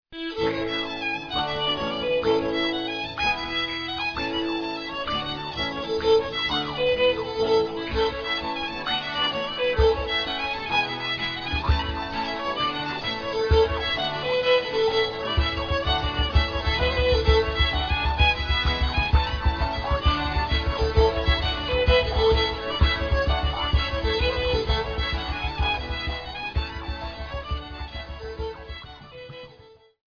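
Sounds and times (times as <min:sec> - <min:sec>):
folk jig: 0:00.2 - 0:30.0.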